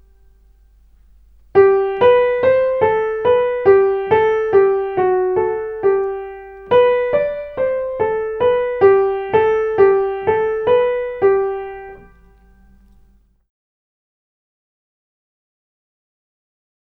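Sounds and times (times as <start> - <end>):
music in G major: 0.0 - 13.4.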